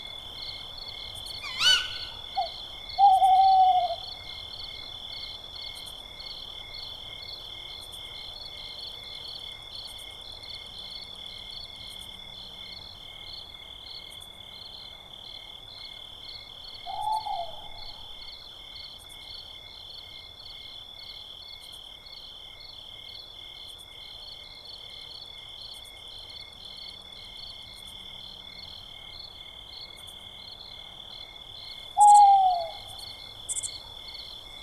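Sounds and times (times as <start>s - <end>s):
owl in a forest: 0.0s - 4.9s, 16.8s - 18.0s, 31.8s - 34.6s.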